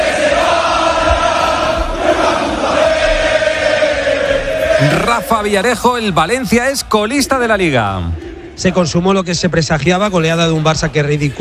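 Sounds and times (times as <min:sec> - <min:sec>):
stadium crowd shouting and chanting against club management: 0:00.0 - 0:09.1
speech: 0:04.8 - 0:11.3.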